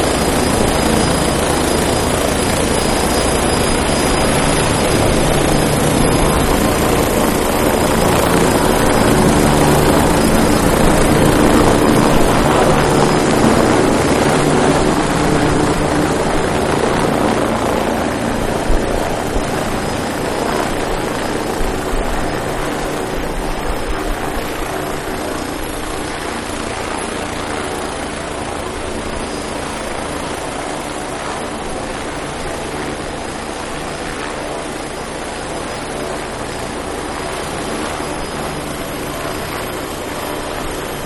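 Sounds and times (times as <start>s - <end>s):
military helicopter idling, lifting off and landing: 0.0s - 41.0s.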